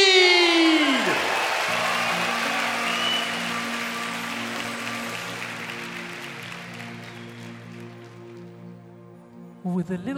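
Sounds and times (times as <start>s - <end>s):
audience applause welcoming a singing duet on stage: 0.2s - 8.5s
speech: 9.9s - 10.1s.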